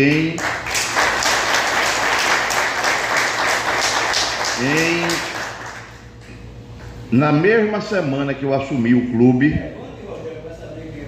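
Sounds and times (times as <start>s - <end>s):
speech: 0.0s - 0.7s, 4.6s - 5.4s, 7.1s - 9.8s
audience applause: 0.4s - 6.0s.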